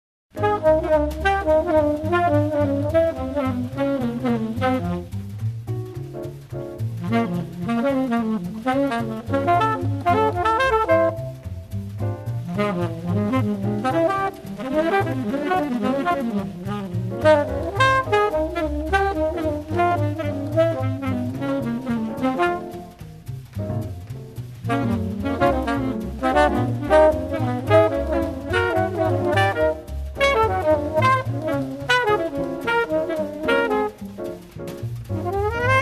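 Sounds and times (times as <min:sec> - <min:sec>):
background music: 0:00.4 - 0:35.7.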